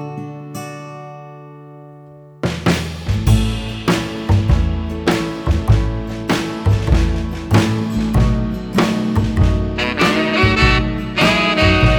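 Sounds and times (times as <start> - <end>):
instrumental music: 2.4 - 11.9.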